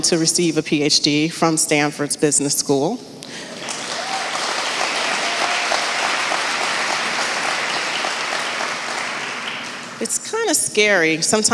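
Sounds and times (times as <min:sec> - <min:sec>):
speech: 0:00.0 - 0:03.5, 0:10.0 - 0:11.5
audience applause: 0:03.5 - 0:10.0.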